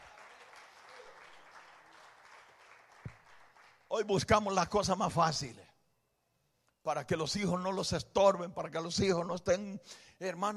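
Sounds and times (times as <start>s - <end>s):
crowd applause: 0.0s - 3.9s
speech: 3.9s - 5.6s, 6.8s - 10.5s.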